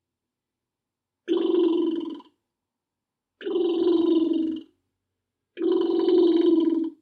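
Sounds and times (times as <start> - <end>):
owl call: 1.3 - 2.3, 3.4 - 4.7, 5.6 - 7.0.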